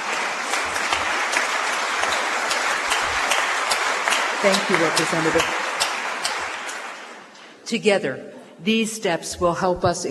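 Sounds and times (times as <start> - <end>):
audience applause: 0.0 - 7.4
speech: 4.4 - 5.7, 7.7 - 10.0.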